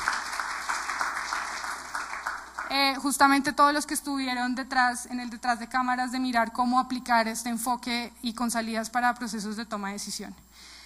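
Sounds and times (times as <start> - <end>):
audience applause for the presentation team: 0.0 - 2.7
speech: 2.7 - 10.7.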